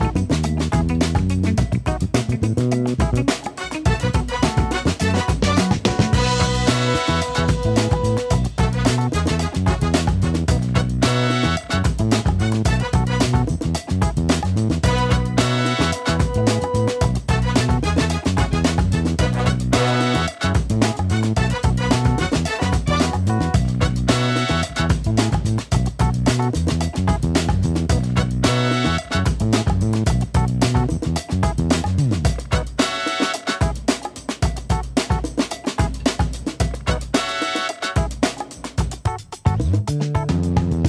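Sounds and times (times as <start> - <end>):
music base: 0.0 - 40.8.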